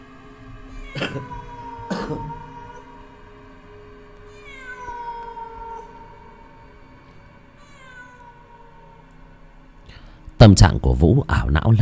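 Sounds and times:
stray cat wailing: 0:00.6 - 0:07.0, 0:07.6 - 0:09.2
speech: 0:10.4 - 0:11.7.

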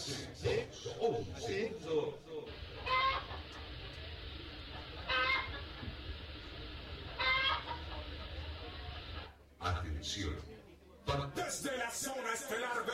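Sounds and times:
speech: 0:00.0 - 0:03.0, 0:10.0 - 0:10.5, 0:11.1 - 0:12.9
hen clucking: 0:02.5 - 0:04.0, 0:04.8 - 0:06.1, 0:07.1 - 0:08.3.

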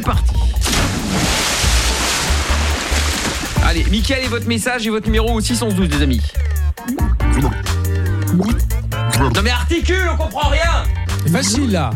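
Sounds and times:
speech: 0:00.0 - 0:00.4, 0:03.7 - 0:07.7, 0:08.3 - 0:11.9
splash sound effect of a dive into a pool: 0:00.6 - 0:04.1.

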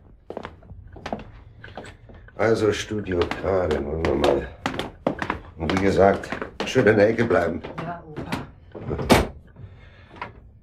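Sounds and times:
speech: 0:02.4 - 0:04.6, 0:05.6 - 0:07.8
massive studio door opening or closing: 0:09.0 - 0:09.4.

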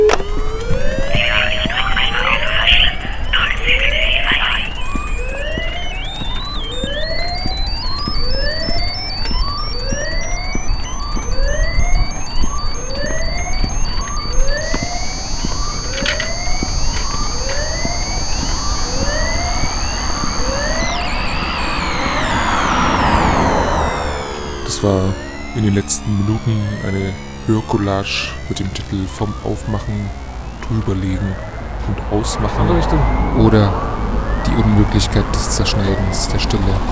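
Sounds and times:
sirens: 0:00.0 - 0:36.9
speech: 0:25.9 - 0:36.9.

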